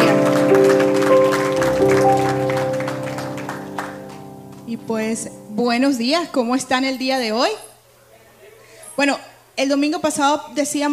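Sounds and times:
strong applause: 0:00.0 - 0:04.7
speech: 0:05.0 - 0:07.7, 0:09.0 - 0:10.9.

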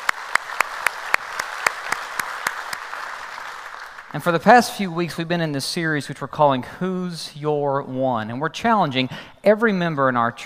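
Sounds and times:
one set of sharp claps at a brisk, even beat: 0:00.0 - 0:04.1
church congregation applauding to welcome visitors to a service: 0:00.0 - 0:04.9
speech: 0:04.1 - 0:10.4.

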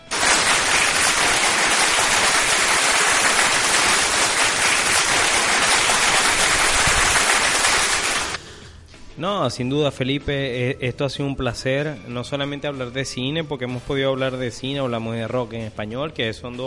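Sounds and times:
applause: 0:00.0 - 0:08.4
speech: 0:09.2 - 0:16.6.

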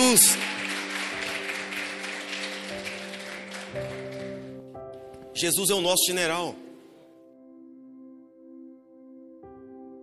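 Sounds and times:
speech: 0:00.0 - 0:00.6, 0:05.4 - 0:06.7
audience applauding: 0:00.0 - 0:04.7
sustained keyboard chords: 0:00.0 - 0:10.0.

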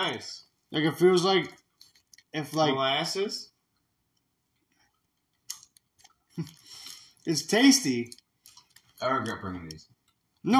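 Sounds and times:
speech: 0:00.0 - 0:01.6, 0:02.3 - 0:03.5, 0:06.4 - 0:06.6, 0:07.2 - 0:08.2, 0:09.0 - 0:10.5
people chewing a sweet-salty bacon-flavored snack: 0:04.9 - 0:10.1.

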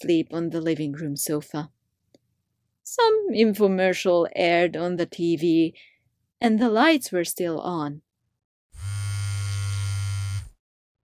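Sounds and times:
speech: 0:00.0 - 0:01.8, 0:02.9 - 0:08.0
mobile phone vibrating buzz: 0:08.8 - 0:10.6.

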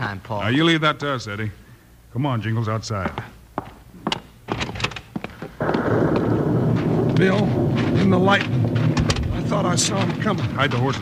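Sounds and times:
speech: 0:00.1 - 0:03.4, 0:07.2 - 0:08.9, 0:09.5 - 0:11.0
thunder of an approaching storm: 0:05.6 - 0:11.0.

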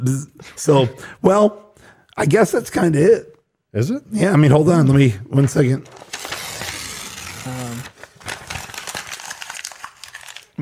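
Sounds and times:
speech: 0:00.0 - 0:06.2, 0:07.4 - 0:08.0
paper ripping and crinkling: 0:05.8 - 0:10.6.

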